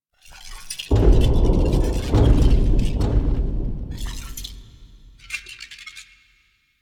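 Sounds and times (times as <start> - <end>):
footsteps: 0.9 - 5.4.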